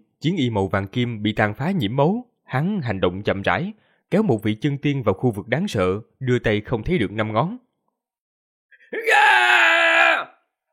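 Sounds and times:
speech: 0.2s - 7.6s
shrill terrified scream of an immortal in a fantasy audiobook: 8.8s - 10.5s.

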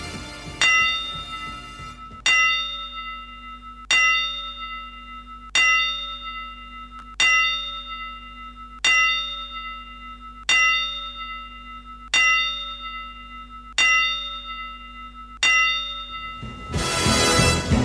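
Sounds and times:
bell tolling: 0.0s - 17.8s.

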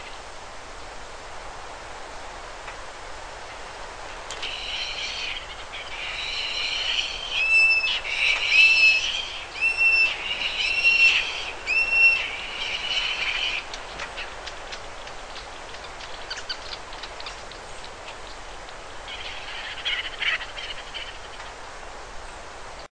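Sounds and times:
bird song of clear level whistled notes: 4.4s - 13.6s.

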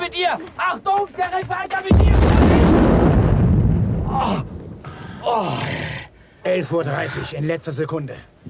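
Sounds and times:
speech: 0.1s - 2.9s, 4.2s - 4.5s, 5.2s - 5.9s, 6.4s - 8.3s
explosion: 1.9s - 5.0s.

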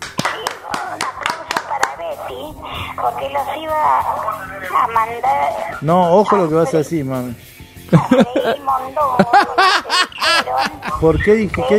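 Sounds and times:
rhythmic hand claps in a radio studio: 0.0s - 2.1s
speech: 3.0s - 11.7s
laughter: 7.9s - 11.2s.

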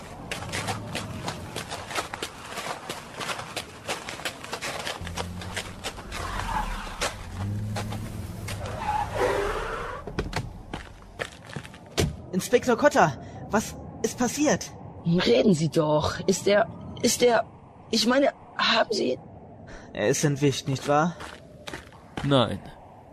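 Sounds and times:
crunching footsteps: 0.0s - 8.8s, 10.3s - 12.0s, 20.7s - 22.5s
many car engines rumbling as cars drive up onto a beach from Rocky Beach: 0.0s - 17.1s
speech: 12.4s - 19.3s, 20.0s - 21.3s, 22.2s - 22.7s.

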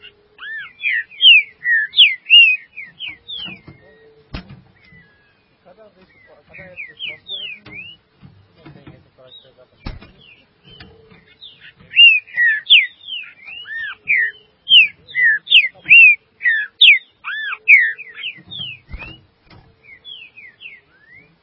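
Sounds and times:
green-winged saltator singing: 0.0s - 8.1s, 9.2s - 21.4s
sharp knocks: 3.0s - 5.1s, 9.8s - 12.5s, 18.3s - 19.8s.

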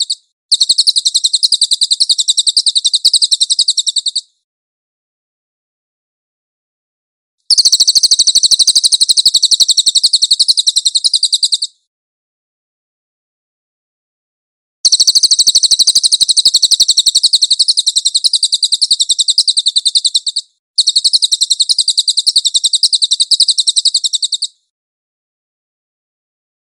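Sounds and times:
cililin singing a high dense rattle: 0.0s - 4.4s, 7.5s - 11.9s, 14.8s - 24.7s.

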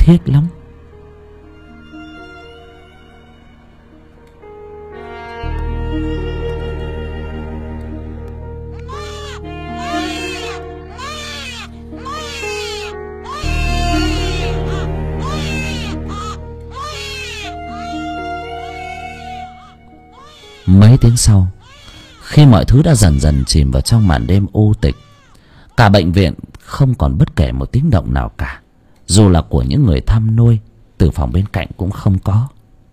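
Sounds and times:
speech: 0.1s - 0.6s, 21.2s - 21.6s, 22.4s - 25.0s, 25.8s - 32.6s
child crying: 8.8s - 25.4s.

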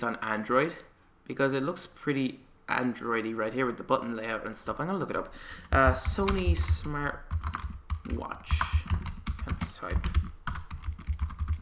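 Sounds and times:
speech: 0.0s - 8.7s, 9.8s - 10.3s
typing on a computer keyboard: 5.6s - 11.5s.

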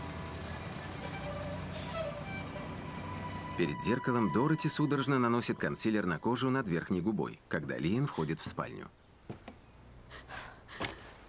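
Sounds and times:
Filly White garbage truck engine rumbling along a street: 0.0s - 4.6s
speech: 3.6s - 9.0s.

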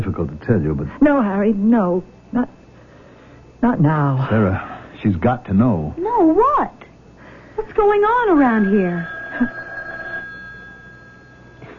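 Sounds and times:
speech: 0.5s - 2.6s, 3.6s - 6.8s, 7.6s - 9.6s
telephone bell ringing in a radio drama: 8.2s - 11.7s.

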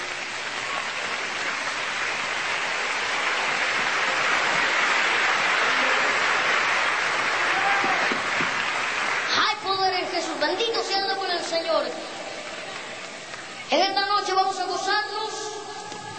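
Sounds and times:
audience clapping hands: 0.0s - 13.6s
speech: 13.7s - 15.5s.

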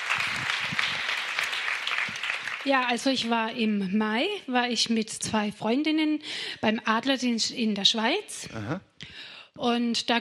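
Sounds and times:
church congregation applause during a sermon service: 0.0s - 3.3s
speech: 2.6s - 10.1s.

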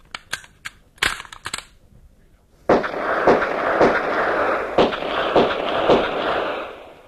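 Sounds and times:
gunshots fired at a target: 2.7s - 7.0s.

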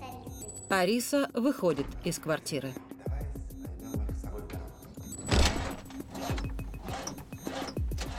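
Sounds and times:
speech: 0.7s - 2.9s
car engine cranking without catching: 5.3s - 8.1s.

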